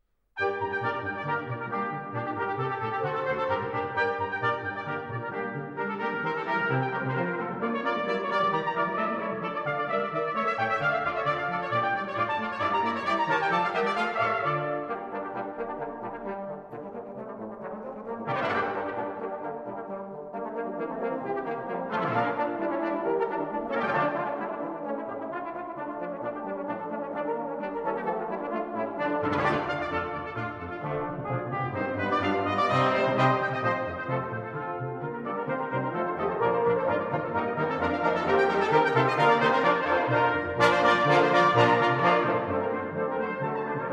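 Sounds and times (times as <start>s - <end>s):
brass ensemble playing: 0.4s - 43.9s.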